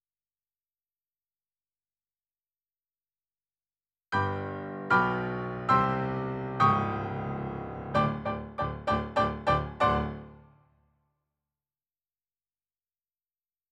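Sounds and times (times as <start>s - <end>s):
rock and roll piano: 4.2s - 10.4s.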